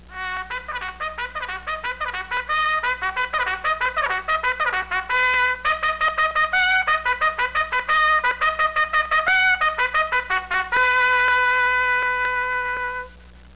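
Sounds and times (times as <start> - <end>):
bugle call: 0.1 - 13.2.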